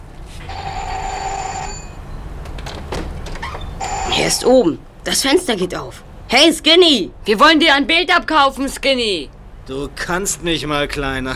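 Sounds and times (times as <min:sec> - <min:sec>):
electric doorbell ringing: 0:00.5 - 0:02.2, 0:03.8 - 0:04.4
speech: 0:04.2 - 0:11.3.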